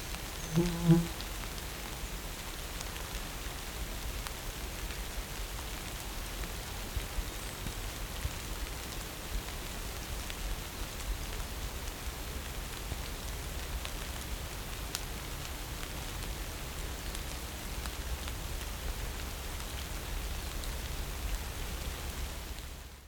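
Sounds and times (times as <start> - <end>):
rain: 0.0 - 23.0.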